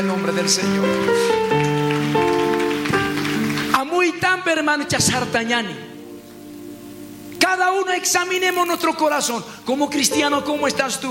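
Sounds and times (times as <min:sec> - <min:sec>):
speech: 0:00.0 - 0:02.4, 0:04.2 - 0:05.9, 0:07.4 - 0:11.0
audience applauding: 0:00.0 - 0:04.1.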